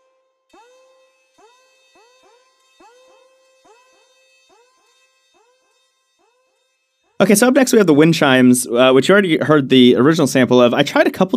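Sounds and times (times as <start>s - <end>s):
synth layered with car horn, alarm-like buzzing: 0.0s - 7.8s
speech: 7.2s - 11.3s.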